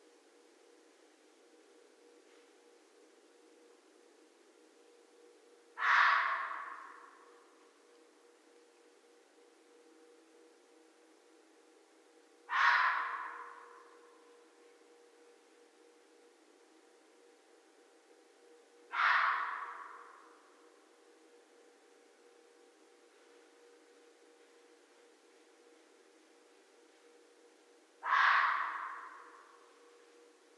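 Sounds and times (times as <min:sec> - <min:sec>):
low hum: 0:00.0 - 0:30.5
red fox raspy bark: 0:05.8 - 0:07.4, 0:12.5 - 0:14.3, 0:18.9 - 0:20.5, 0:28.0 - 0:29.8.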